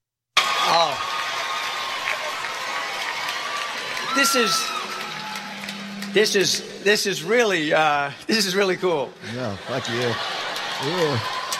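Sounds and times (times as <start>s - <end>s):
high whoops and shouts: 0.4s - 5.8s
crowd cheering: 0.4s - 7.9s, 9.2s - 11.5s
speech: 4.2s - 4.8s, 6.1s - 11.4s
laughter: 9.2s - 11.5s.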